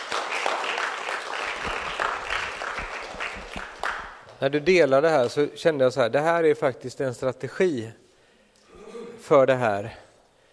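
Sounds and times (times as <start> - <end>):
audience applause: 0.0 - 4.3
speech: 4.4 - 8.0, 9.3 - 10.0.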